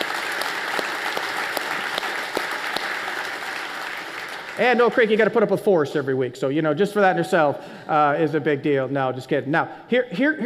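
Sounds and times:
audience applauding: 0.0 - 5.4
speech: 4.6 - 10.4.

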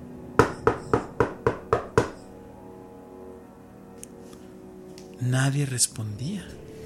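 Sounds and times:
firm knocking on a door: 0.4 - 2.2
speech: 5.2 - 6.7.

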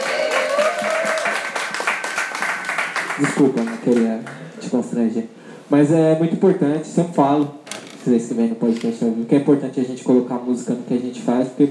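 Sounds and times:
audience applause for DJ: 0.0 - 4.5
speech: 3.2 - 11.6.

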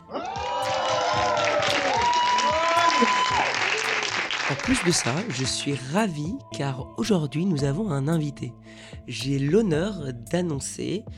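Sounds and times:
audience whoops and shouting voices: 0.0 - 4.2
live audience applauding at a public taping after a mentalism stage show: 0.0 - 5.6
speech: 4.7 - 11.1.

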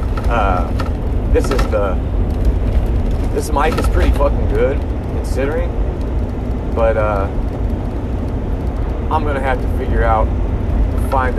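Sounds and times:
semi truck engine and road rumble in the cab: 0.0 - 11.3
speech: 0.3 - 2.2, 3.4 - 5.9, 6.8 - 7.4, 9.1 - 10.4, 11.1 - 11.3.

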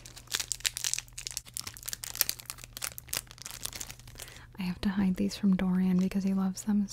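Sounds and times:
plastic snack wrapper crinkling: 0.0 - 4.5
speech: 4.6 - 6.9.

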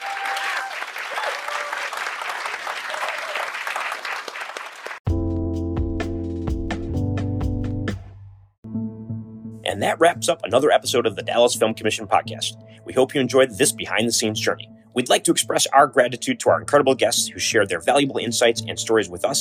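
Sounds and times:
crowd clapping: 0.0 - 5.0
music with sustained bass notes: 5.1 - 19.3
speech: 9.7 - 19.3.

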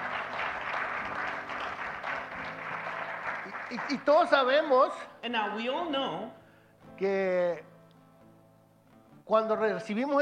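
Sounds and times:
crowd applauding: 0.0 - 4.7
speech: 3.7 - 6.4, 7.0 - 7.7, 9.3 - 10.2.

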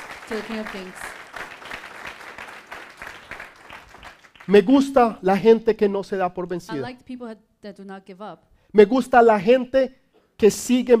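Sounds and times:
audience applauding: 0.0 - 5.0
speech: 0.3 - 1.1, 4.5 - 10.9.

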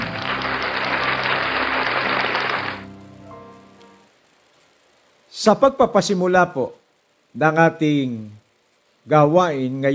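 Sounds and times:
audience applauding loudly: 0.0 - 3.0
speech: 5.4 - 6.8, 7.4 - 8.4, 9.0 - 9.9.

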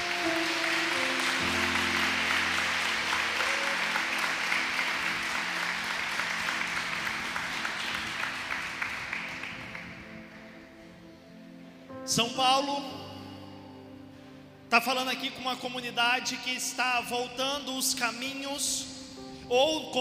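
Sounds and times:
audience applause: 0.0 - 10.4
speech: 12.2 - 13.0, 14.7 - 19.9.

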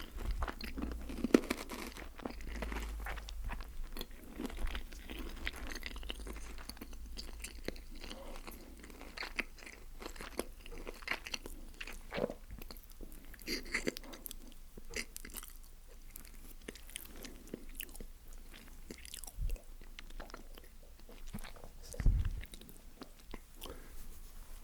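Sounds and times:
person eating KFC Zinger Burger, BBQ Bites and Snack Box: 0.0 - 23.9.

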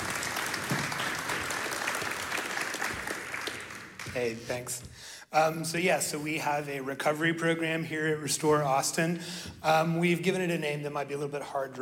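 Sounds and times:
audience applause: 0.0 - 4.5
speech: 4.2 - 11.8.

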